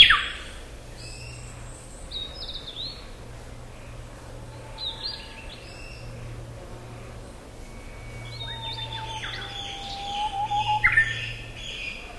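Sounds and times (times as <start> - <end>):
black paradise flycatcher harsh buzzy notes: 3.9 - 12.1.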